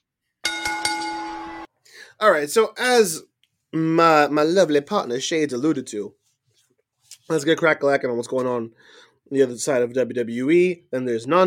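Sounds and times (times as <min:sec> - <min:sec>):
bell ringing: 0:00.4 - 0:01.7
speech: 0:02.2 - 0:06.2, 0:07.3 - 0:11.4.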